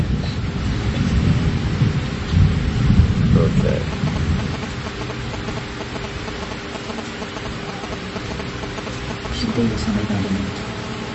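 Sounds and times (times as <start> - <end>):
deep rumbling like thunder: 0.0 - 5.6
heavy rain pouring: 0.0 - 11.1.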